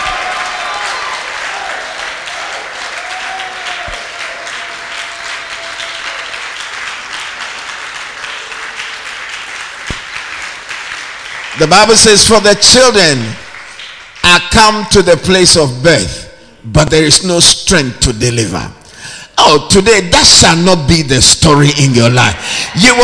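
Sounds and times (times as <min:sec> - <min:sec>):
audience clapping and shouting: 0:00.0 - 0:14.9, 0:21.8 - 0:23.0
speech: 0:11.6 - 0:13.4, 0:14.3 - 0:18.8, 0:19.5 - 0:23.0.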